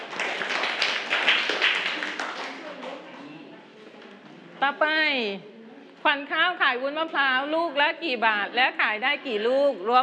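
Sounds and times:
crowd clapping: 0:00.0 - 0:03.0
speech: 0:04.7 - 0:10.0.

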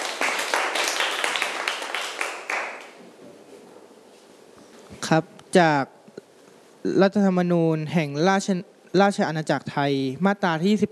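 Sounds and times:
classroom clapping: 0:00.0 - 0:03.0
speech: 0:05.0 - 0:05.9, 0:06.8 - 0:10.9.

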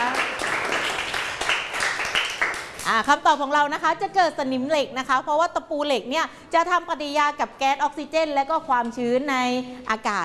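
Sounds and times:
classroom applause for a student: 0:00.0 - 0:02.9
speech: 0:02.9 - 0:10.2.

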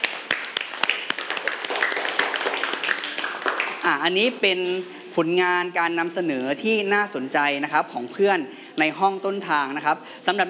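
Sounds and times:
classroom clapping: 0:00.0 - 0:04.1
speech: 0:03.9 - 0:10.4.

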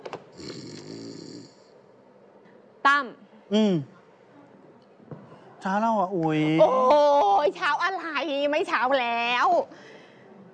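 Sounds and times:
man snoring asleep on a sofa: 0:00.4 - 0:01.7
speech: 0:02.8 - 0:04.0, 0:05.6 - 0:09.9.

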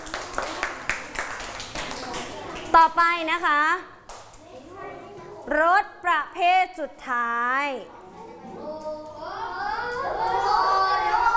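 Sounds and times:
classmates clapping for a pupil in a primary school maths lesson: 0:00.0 - 0:02.8
speech: 0:02.8 - 0:04.0, 0:05.5 - 0:08.0, 0:10.0 - 0:10.6.

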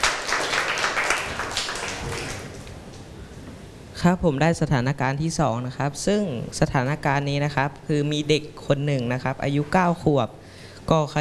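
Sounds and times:
classroom applause: 0:00.0 - 0:02.8
speech: 0:04.0 - 0:11.1.

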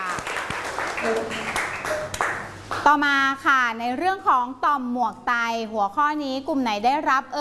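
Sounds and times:
students applauding: 0:00.0 - 0:02.8
speech: 0:01.0 - 0:01.6, 0:02.9 - 0:07.4.

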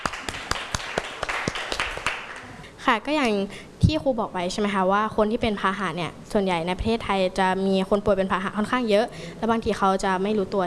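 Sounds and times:
classroom applause: 0:00.0 - 0:02.6
speech: 0:02.8 - 0:10.6.

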